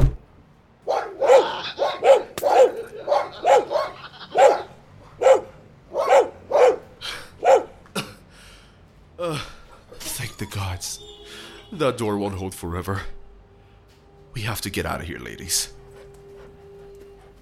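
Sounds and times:
large fierce dogs barking: 0.8s - 7.9s
speech: 10.8s - 13.2s, 14.4s - 15.8s.

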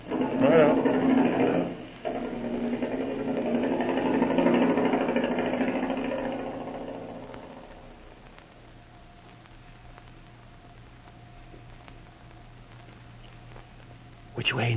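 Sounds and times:
motor starting and running: 0.0s - 8.0s
speech: 14.6s - 14.7s.

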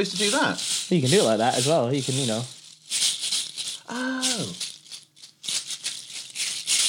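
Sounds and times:
speech: 0.0s - 2.6s, 3.9s - 4.7s
rain stick being tipped and shaken: 0.0s - 6.8s.

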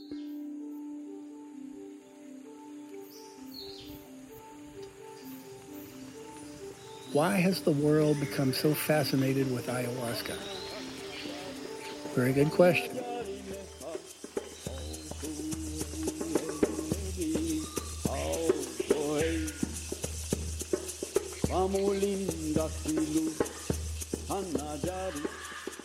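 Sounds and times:
speech: 7.1s - 10.6s, 12.2s - 13.0s, 21.7s - 23.6s
wavering chant-like voice: 7.1s - 19.9s, 21.4s - 25.8s.

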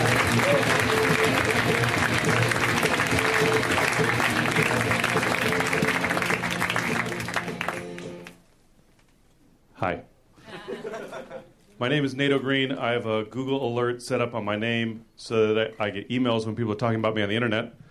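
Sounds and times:
audience applause welcoming a comedian at a comedy show: 0.0s - 8.4s
laughter: 10.4s - 11.6s
speech: 11.8s - 17.8s.

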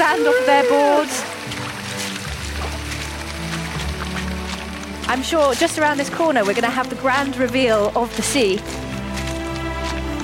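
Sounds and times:
water cascading off a cliff face: 0.0s - 10.2s
speech: 5.1s - 8.9s.

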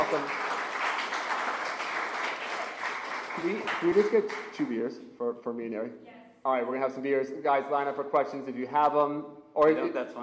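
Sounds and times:
audience applause: 0.0s - 4.6s
speech: 0.1s - 0.4s, 3.4s - 10.2s.

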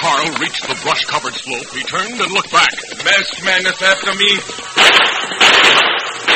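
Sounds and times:
speech: 0.1s - 5.8s
gunshots fired during horseback chase: 4.8s - 6.3s.

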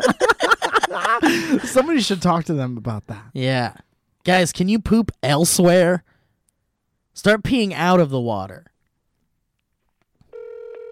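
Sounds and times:
laughter: 0.0s - 2.2s
speech: 1.3s - 6.1s, 7.2s - 8.7s
electronic telephone ringing tone: 10.3s - 10.9s.

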